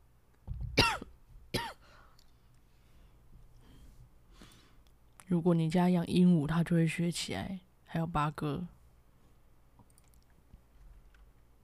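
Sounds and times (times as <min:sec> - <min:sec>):
person coughing: 0:00.8 - 0:02.0
speech: 0:05.3 - 0:08.8.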